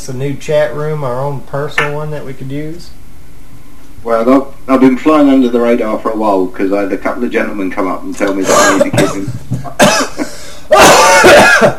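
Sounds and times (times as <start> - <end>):
speech: 0.0 - 3.0, 4.0 - 10.1, 11.2 - 11.7
hacking throat clearing after choking: 8.4 - 10.2, 11.2 - 11.7
person coughing after choking: 8.4 - 11.7.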